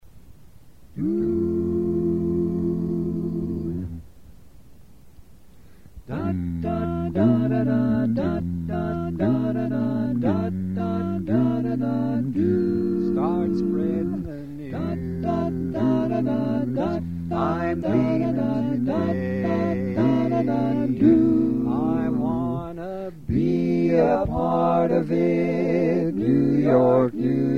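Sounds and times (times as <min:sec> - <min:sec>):
bass: 0:00.9 - 0:04.1, 0:06.0 - 0:27.5.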